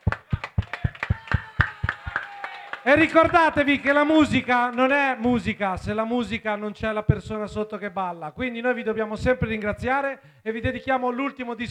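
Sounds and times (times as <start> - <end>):
hand clapping applause: 0.0 - 7.6
speech: 2.8 - 11.6.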